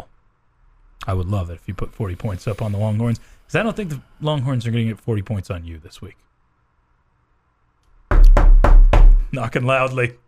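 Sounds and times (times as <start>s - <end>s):
speech: 1.0s - 6.3s, 9.3s - 10.2s
loud knocking: 8.1s - 9.3s.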